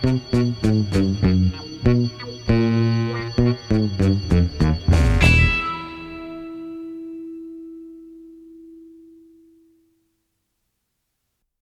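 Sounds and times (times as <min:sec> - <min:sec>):
spooky sound: 0:00.0 - 0:07.4.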